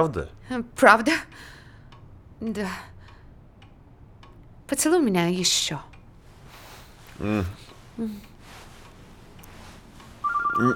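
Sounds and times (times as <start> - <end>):
speech: 0.0 - 1.5, 2.4 - 2.9, 4.7 - 5.9, 7.2 - 8.3, 10.6 - 10.7
telephone ringing: 10.2 - 10.7.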